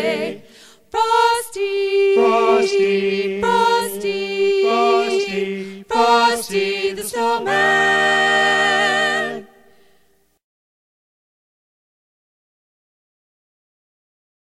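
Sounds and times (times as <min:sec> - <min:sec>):
Christmas carolers singing: 0:00.0 - 0:09.7.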